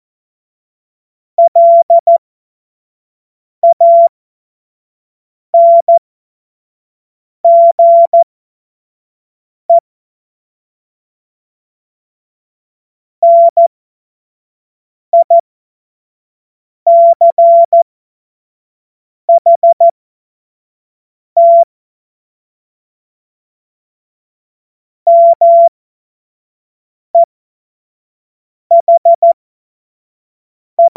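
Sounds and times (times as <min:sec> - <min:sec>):
CW Morse code beeps: 0:01.4 - 0:02.2, 0:03.6 - 0:04.1, 0:05.6 - 0:06.0, 0:07.4 - 0:08.2, 0:13.2 - 0:13.7, 0:15.2 - 0:15.4, 0:16.9 - 0:17.8, 0:19.3 - 0:19.9, 0:21.4 - 0:21.7, 0:25.1 - 0:25.7, 0:28.7 - 0:29.4, 0:30.8 - 0:30.9.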